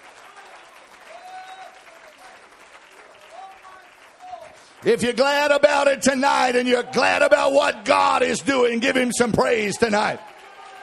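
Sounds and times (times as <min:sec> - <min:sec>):
hand clapping: 0:00.0 - 0:05.1, 0:09.8 - 0:10.8
speech: 0:04.8 - 0:10.3.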